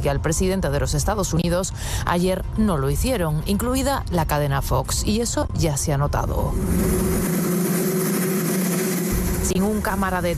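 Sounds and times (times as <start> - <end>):
speech: 0.0 - 7.3, 9.5 - 10.3
helicopter noise in the White House garden: 6.5 - 10.3.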